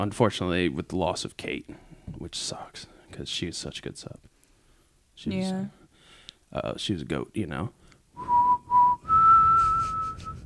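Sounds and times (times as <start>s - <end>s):
speech: 0.0s - 4.3s, 5.2s - 5.8s, 6.5s - 8.3s
soft hiss: 0.0s - 10.4s
person whistling a mournful tune: 8.2s - 10.4s.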